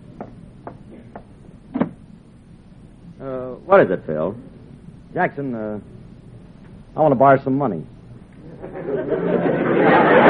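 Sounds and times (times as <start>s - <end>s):
low hum: 0.0s - 10.2s
door closing thud: 1.7s - 2.0s
speech: 3.2s - 4.5s, 5.2s - 5.9s, 7.0s - 8.0s
laughter: 8.4s - 10.2s.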